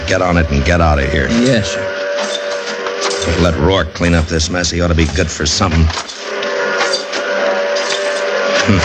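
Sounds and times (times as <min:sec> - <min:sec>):
lonesome train whistle: 0:00.0 - 0:04.5, 0:06.3 - 0:08.8
speech: 0:00.1 - 0:02.4, 0:03.2 - 0:06.1, 0:08.7 - 0:08.8.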